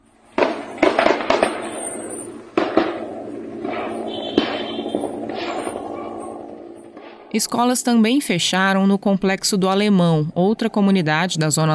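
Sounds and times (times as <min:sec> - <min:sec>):
gunshots during police operation: 0:00.3 - 0:07.4
speech: 0:07.4 - 0:11.7.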